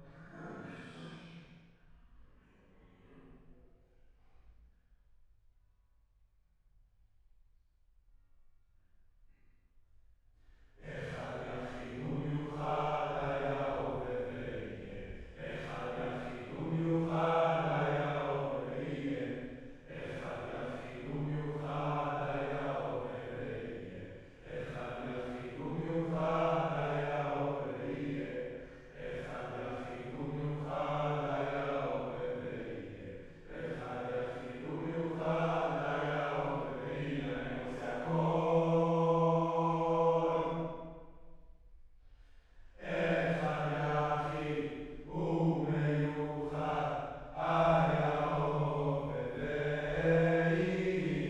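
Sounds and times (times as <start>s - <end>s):
choir singing: 10.8s - 40.9s, 42.8s - 51.2s.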